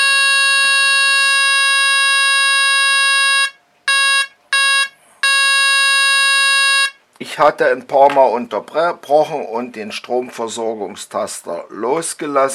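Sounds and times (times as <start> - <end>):
electric horn blaring: 0.0 - 7.0
speech: 7.2 - 12.5.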